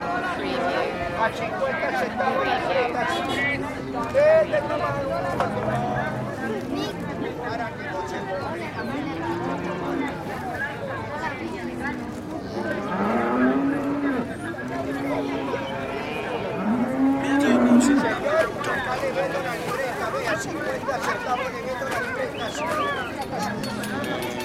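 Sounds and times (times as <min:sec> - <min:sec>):
animal market ambience: 0:00.0 - 0:24.4.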